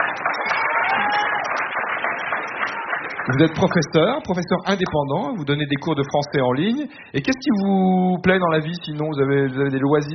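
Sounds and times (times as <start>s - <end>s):
audience applause: 0.0s - 4.5s
speech: 3.3s - 10.1s.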